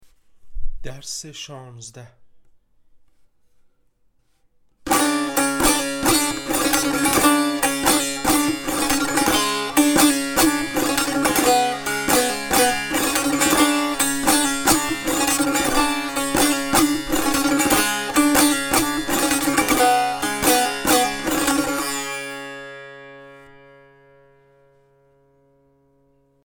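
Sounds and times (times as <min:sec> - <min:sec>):
tanbur practice: 0:04.8 - 0:23.9.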